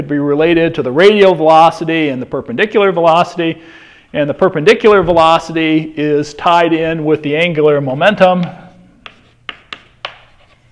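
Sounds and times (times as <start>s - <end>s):
speech: 0.0s - 8.6s
taps and scrapes of an equation written on a board during a physics lecture: 8.4s - 10.7s.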